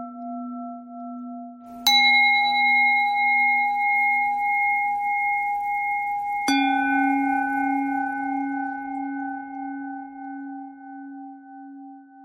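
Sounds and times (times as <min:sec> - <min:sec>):
bells ringing: 0:01.9 - 0:09.6.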